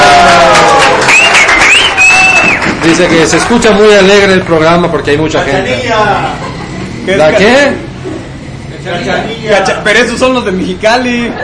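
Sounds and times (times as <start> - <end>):
cheering from studio guests: 0.0 - 3.0
applause from studio guests: 0.0 - 4.6
speech: 2.8 - 6.5, 7.1 - 7.9, 8.8 - 11.4
laughter: 5.8 - 8.4, 11.1 - 11.4.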